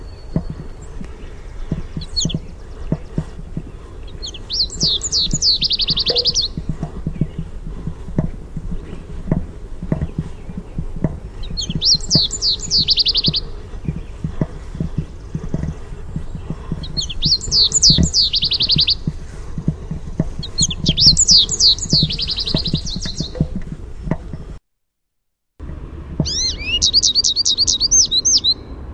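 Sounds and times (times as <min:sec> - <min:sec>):
American goldfinch contact song: 0:00.0 - 0:24.4, 0:26.2 - 0:28.8
background clicks and taps: 0:05.5 - 0:24.6.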